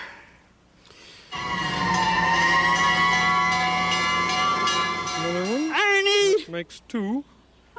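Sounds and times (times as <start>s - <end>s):
fire engine siren: 1.3s - 5.3s
speech: 6.7s - 7.4s.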